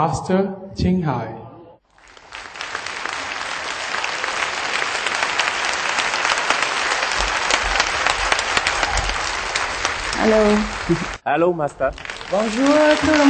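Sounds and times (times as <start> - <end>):
speech: 0.0 - 1.4, 10.2 - 13.2
sustained audience applause from a large crowd: 1.9 - 13.2.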